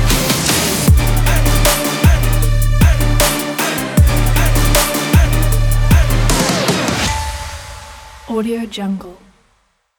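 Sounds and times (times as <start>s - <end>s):
trap beat: 0.0s - 7.1s.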